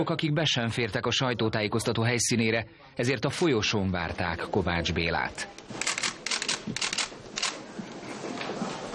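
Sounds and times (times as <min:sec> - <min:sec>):
speech: 0:00.0 - 0:05.9, 0:06.6 - 0:07.0
camera shutter clicks at a press conference: 0:05.8 - 0:07.6
steady murmur of crowd noise: 0:06.7 - 0:08.9.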